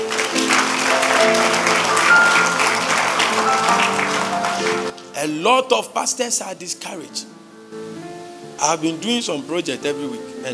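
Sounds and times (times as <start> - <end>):
audience clapping: 0.0 - 5.1
speech: 5.2 - 7.4, 8.6 - 10.5.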